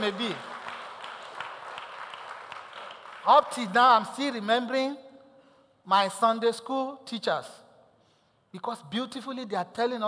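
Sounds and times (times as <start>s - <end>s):
speech: 0.0s - 0.5s, 3.2s - 5.0s, 5.8s - 7.6s, 8.5s - 10.0s
audience clapping hands: 0.0s - 4.2s.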